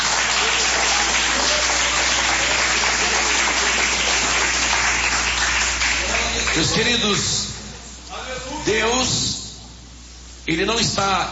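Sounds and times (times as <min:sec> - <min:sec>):
audience applause: 0:00.0 - 0:06.8
speech: 0:06.6 - 0:07.4, 0:08.7 - 0:09.3, 0:10.5 - 0:11.2.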